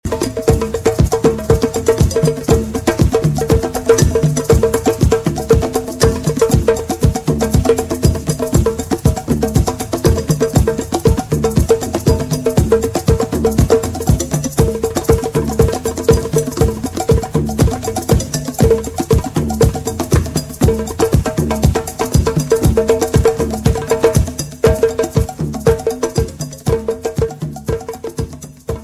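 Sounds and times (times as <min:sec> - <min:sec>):
tribal sound: 0:00.0 - 0:28.8.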